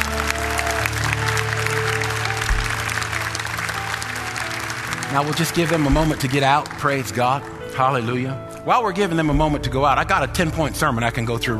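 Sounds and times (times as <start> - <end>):
audience applauding: 0.0 - 8.0
speech: 5.1 - 11.5.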